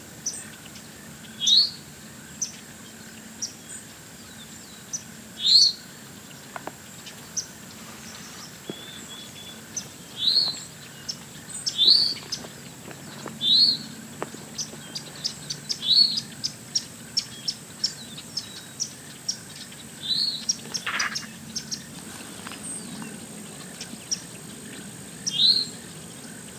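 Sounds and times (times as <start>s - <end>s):
spotted towhee call notes: 0.2s - 26.5s.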